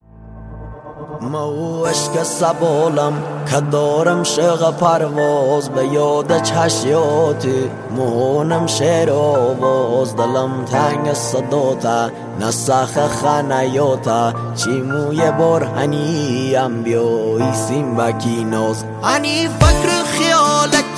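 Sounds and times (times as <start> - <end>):
sad music remix: 0.0 - 20.9.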